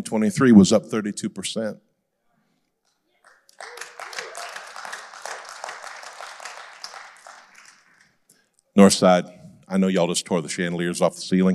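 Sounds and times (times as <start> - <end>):
speech: 0.0 - 1.9, 8.8 - 11.5
golf clap from audience: 3.2 - 8.3.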